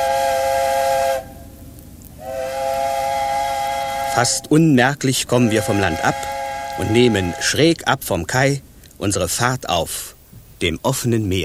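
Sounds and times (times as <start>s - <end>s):
ship's siren howling at departure: 0.0s - 1.4s, 2.2s - 4.6s, 5.3s - 7.7s
speech: 4.2s - 11.4s.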